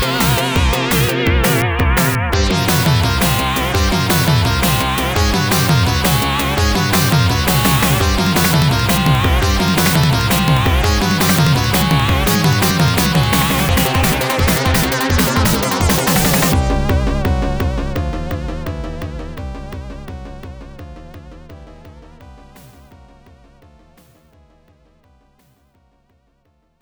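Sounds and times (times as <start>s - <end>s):
evil boss stage game beat: 0.0s - 17.9s.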